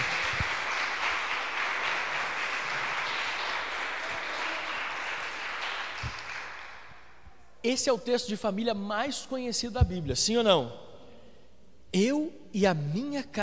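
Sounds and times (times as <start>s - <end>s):
audience applauding: 0.0s - 7.0s
speech: 7.6s - 10.8s, 11.9s - 13.4s.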